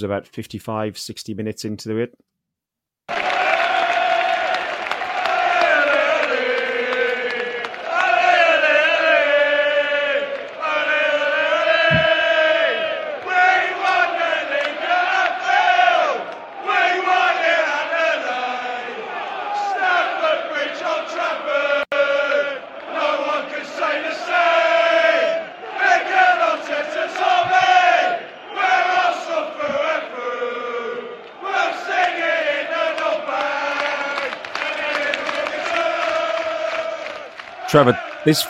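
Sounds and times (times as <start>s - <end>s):
speech: 0.0s - 2.3s, 37.7s - 38.4s
away football supporters chanting in a stadium: 3.1s - 38.4s.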